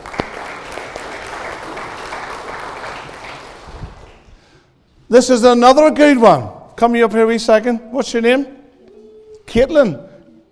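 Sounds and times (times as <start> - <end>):
audience clapping: 0.0 - 4.4
speech: 5.1 - 8.6, 9.5 - 10.1.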